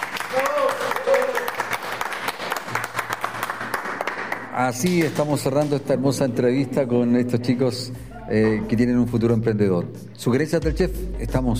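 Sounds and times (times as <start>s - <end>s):
audience applause: 0.0s - 5.6s
speech: 4.6s - 11.5s.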